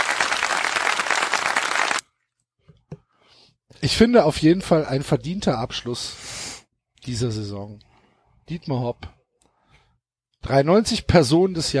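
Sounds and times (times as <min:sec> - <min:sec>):
applause sound effect: 0:00.0 - 0:02.0
speech: 0:03.8 - 0:06.4, 0:07.1 - 0:07.9, 0:08.5 - 0:09.2, 0:10.4 - 0:11.7.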